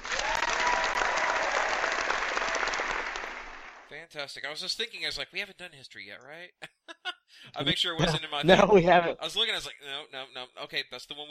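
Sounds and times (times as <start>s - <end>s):
applause sound effect: 0.0s - 3.9s
speech: 4.2s - 6.7s, 7.4s - 11.2s
laughter: 6.6s - 9.6s.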